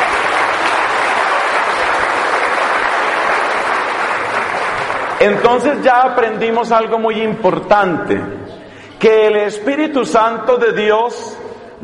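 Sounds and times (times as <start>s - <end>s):
audience applause: 0.0s - 5.8s
speech: 5.2s - 11.8s.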